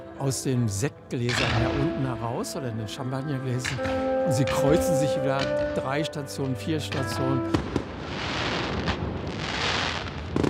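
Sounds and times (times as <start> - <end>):
speech: 0.2 - 7.8
fireworks rockets exploding: 7.5 - 10.4.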